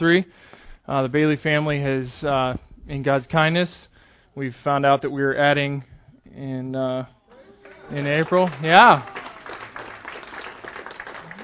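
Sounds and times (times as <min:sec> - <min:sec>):
speech: 0:00.0 - 0:07.2, 0:07.9 - 0:09.2
church audience clapping at a pregnancy announcement: 0:07.3 - 0:11.4.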